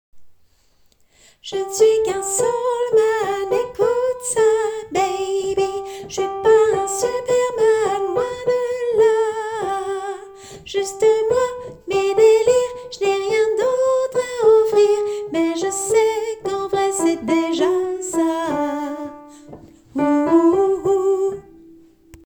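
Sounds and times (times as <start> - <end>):
soprano singing: 1.4 - 22.2.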